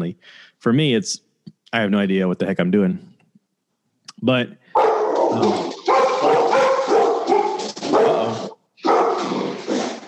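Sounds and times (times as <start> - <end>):
speech: 0.0 - 3.1, 4.2 - 4.6, 5.3 - 5.8
dog barking frantically at a FedEx delivery man in front of the house: 4.7 - 10.0.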